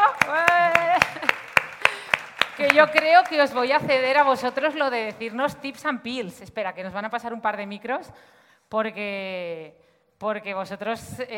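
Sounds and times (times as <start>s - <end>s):
rhythmic clapping: 0.0s - 5.6s
speech: 2.6s - 11.3s.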